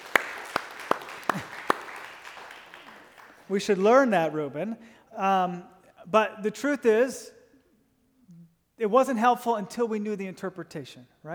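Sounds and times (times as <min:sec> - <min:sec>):
scattered audience claps: 0:00.0 - 0:04.0
speech: 0:01.3 - 0:01.5, 0:03.5 - 0:07.4, 0:08.8 - 0:11.3.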